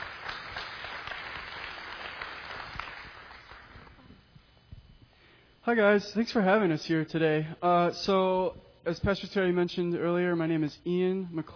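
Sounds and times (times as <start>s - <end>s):
congregation applause at a morning church service: 0.0s - 4.0s
speech: 5.7s - 11.5s.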